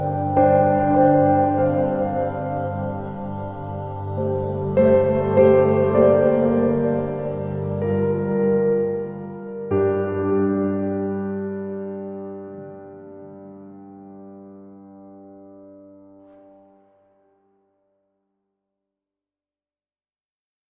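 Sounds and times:
drone: 0.0s - 9.5s
piano: 0.0s - 18.1s.

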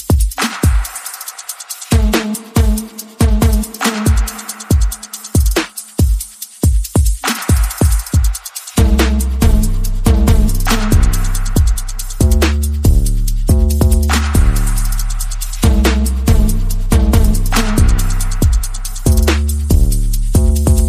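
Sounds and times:
percussion: 0.0s - 20.8s
bass: 8.8s - 20.8s.

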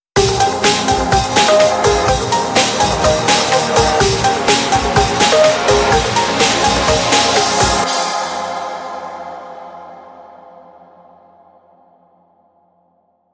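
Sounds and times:
music sting: 0.2s - 8.4s.

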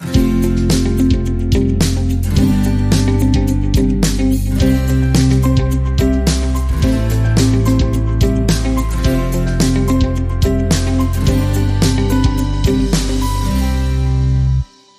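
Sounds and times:
acoustic music: 0.0s - 14.9s.

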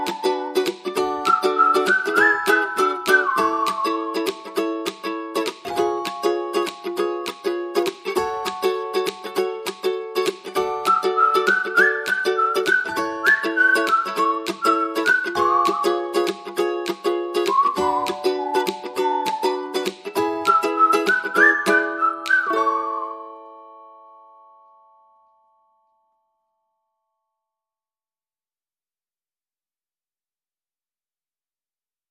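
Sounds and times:
whistling: 0.0s - 4.4s, 10.8s - 16.4s, 17.4s - 23.5s
ukulele: 0.0s - 24.9s.

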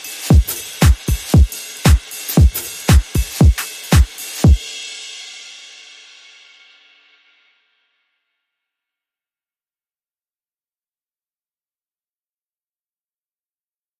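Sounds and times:
music beat: 0.0s - 4.7s.

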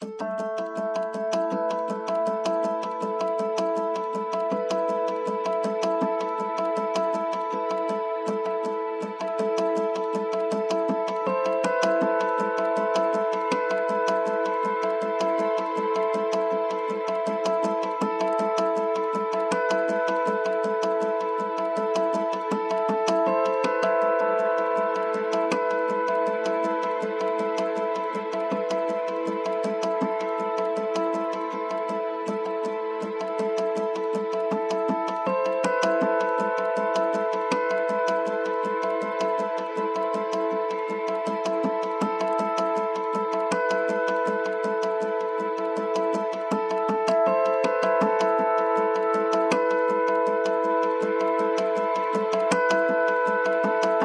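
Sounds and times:
keyboard: 0.0s - 54.0s.

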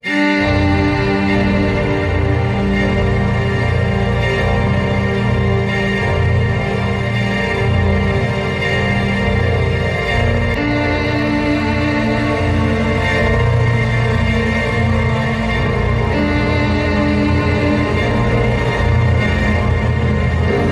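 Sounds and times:
ambient music: 0.0s - 20.7s.

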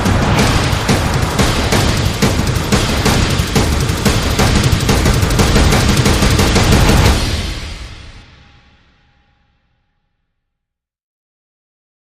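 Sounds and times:
drum kit: 0.0s - 8.6s.

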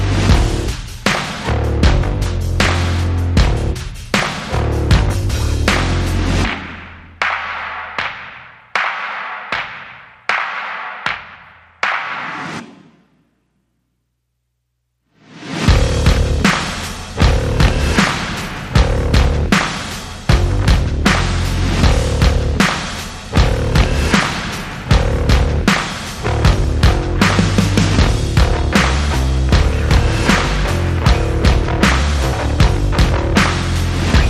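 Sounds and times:
bass: 0.0s - 6.8s, 15.7s - 18.1s, 18.8s - 24.3s, 24.9s - 34.2s
drums: 0.0s - 13.1s, 15.2s - 34.2s.

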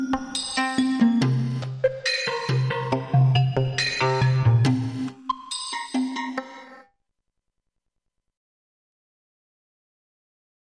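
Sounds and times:
rhythm: 0.0s - 6.8s.

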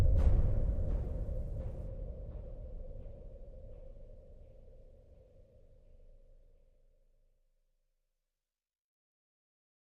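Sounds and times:
drums: 0.0s - 4.2s.

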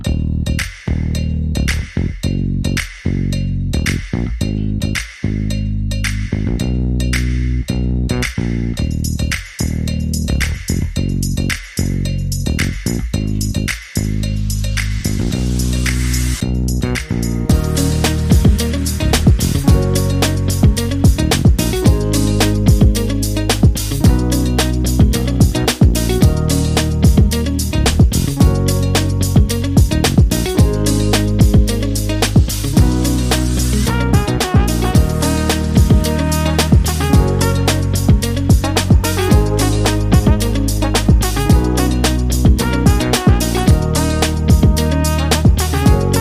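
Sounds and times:
funk music: 0.1s - 46.1s.

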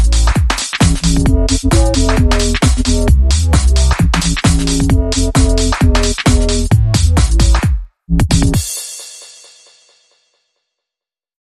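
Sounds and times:
bass: 0.0s - 8.6s
drums: 0.0s - 10.4s.

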